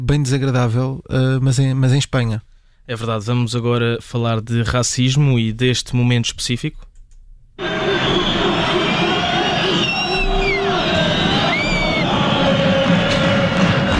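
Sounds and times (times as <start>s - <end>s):
speech: 0.0s - 6.9s
large stadium crowd roaring: 7.6s - 13.9s.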